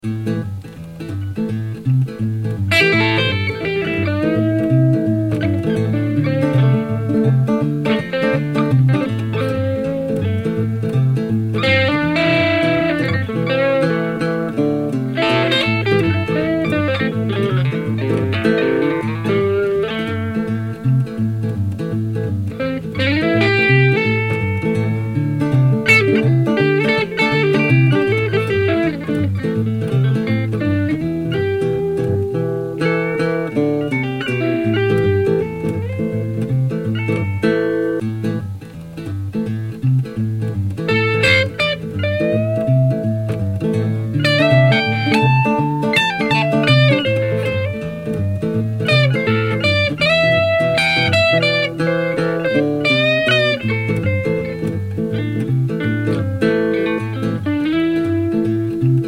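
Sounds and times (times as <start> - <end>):
Telecaster rockabilly guitar solo: 0.0 - 59.0.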